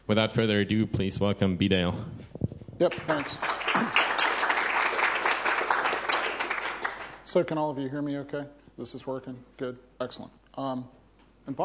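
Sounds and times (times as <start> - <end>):
speech: 0.1 - 4.1, 7.3 - 11.6
audience applause: 2.9 - 7.2.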